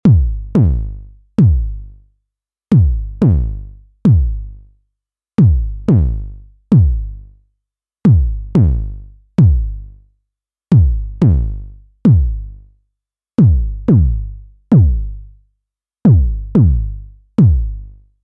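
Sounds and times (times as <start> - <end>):
overdriven bass drum: 0.0 - 1.8, 2.7 - 4.5, 5.4 - 7.1, 8.1 - 9.8, 10.7 - 12.5, 13.4 - 15.2, 16.1 - 17.9.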